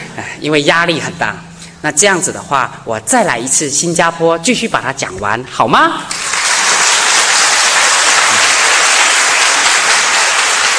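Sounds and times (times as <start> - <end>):
speech: 0.4 - 6.3
audience applause: 6.1 - 10.7.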